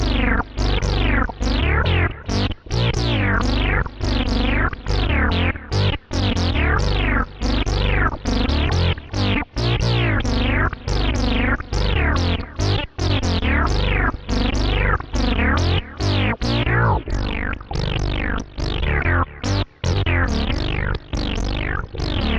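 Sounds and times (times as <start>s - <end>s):
bass synthesizer with delay chorus and reverb: 0.0s - 22.3s.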